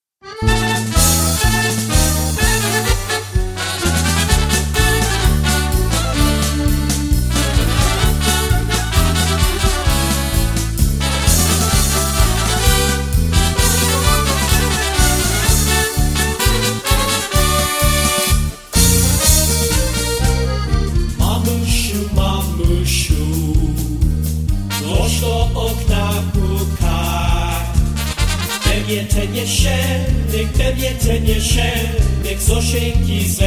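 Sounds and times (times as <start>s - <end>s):
polka music: 0.2s - 33.4s.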